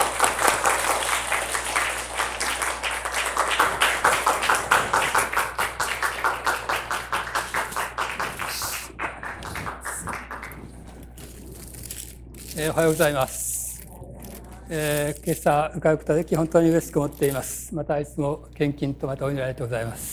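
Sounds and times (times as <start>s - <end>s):
audience applause: 0.0s - 11.0s
speech: 12.8s - 13.4s, 14.7s - 20.1s.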